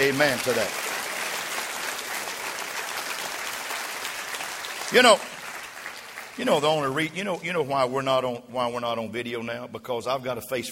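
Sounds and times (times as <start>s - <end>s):
speech: 0.0s - 0.9s, 4.9s - 5.4s, 6.4s - 10.7s
audience clapping hands: 0.0s - 7.6s.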